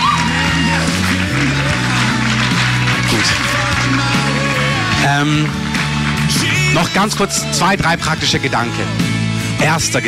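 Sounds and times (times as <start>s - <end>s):
audience applause: 0.0s - 7.8s
speech: 5.1s - 5.6s, 6.8s - 10.0s.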